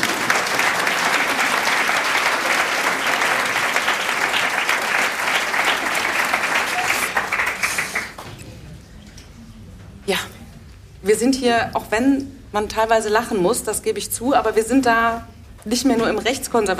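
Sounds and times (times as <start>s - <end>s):
audience applause: 0.0s - 8.3s
speech: 11.1s - 16.7s.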